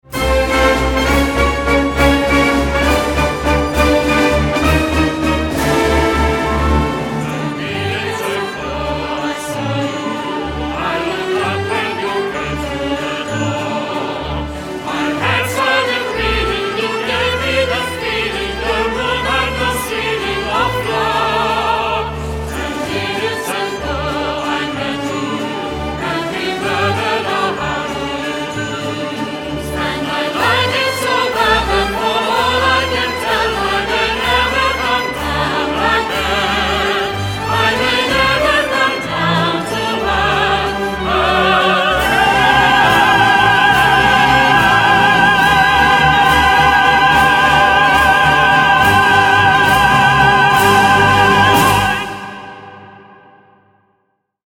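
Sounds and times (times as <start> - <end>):
waltz music: 0.0 - 53.4.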